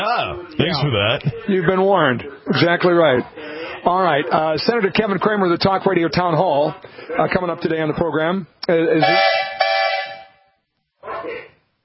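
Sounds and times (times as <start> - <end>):
speech: 0.0 - 9.4
steam whistle at a threshing show: 9.0 - 10.4.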